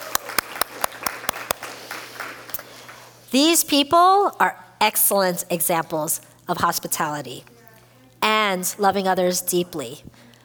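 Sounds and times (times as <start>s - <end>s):
audience applause: 0.0s - 3.3s
speech: 3.3s - 7.5s, 8.2s - 10.2s.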